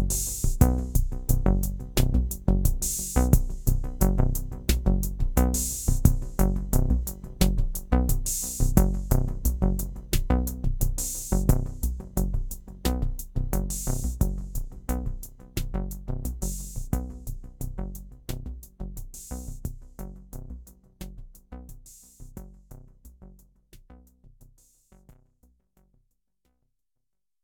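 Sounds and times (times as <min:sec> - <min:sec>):
TR808 drum machine simple sequence: 0:00.0 - 0:20.0.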